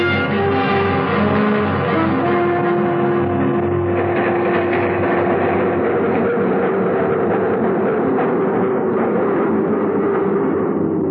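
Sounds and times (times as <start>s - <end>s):
train pulling into a station: 0.2s - 11.0s.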